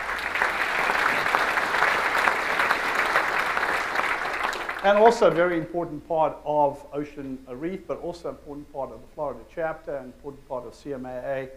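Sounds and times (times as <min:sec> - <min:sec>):
audience applause: 0:00.0 - 0:05.4
speech: 0:04.8 - 0:11.5.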